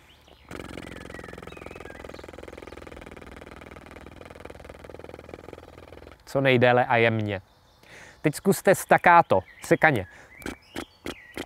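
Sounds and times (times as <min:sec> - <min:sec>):
lip buzzing drone, didgeridoo embouchure exercise: 0:00.5 - 0:06.4
speech: 0:06.3 - 0:07.5, 0:08.2 - 0:10.6.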